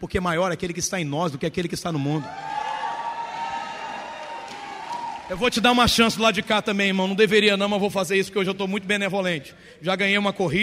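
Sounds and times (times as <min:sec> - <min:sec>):
speech: 0:00.0 - 0:02.6, 0:05.3 - 0:10.6
crowd shouting and cheering: 0:02.1 - 0:06.8
high-pitched whoops: 0:02.2 - 0:05.3.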